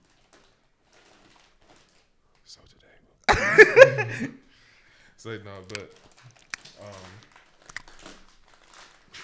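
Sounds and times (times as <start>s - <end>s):
crinkling plastic of glued product packaging: 0.0s - 2.2s, 5.6s - 9.2s
laughter: 3.3s - 4.4s
speech: 3.4s - 4.4s, 5.2s - 6.1s, 6.8s - 7.3s.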